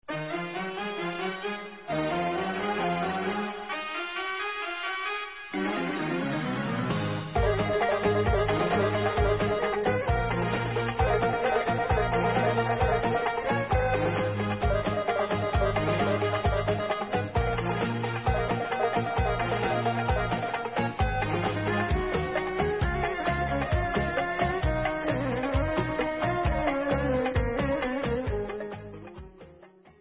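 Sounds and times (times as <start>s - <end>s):
dabke instrumental music: 0.1s - 29.9s.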